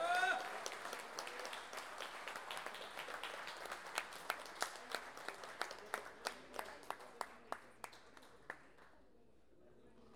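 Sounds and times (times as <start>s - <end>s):
audience applause for payadores folk singers: 0.0s - 8.6s.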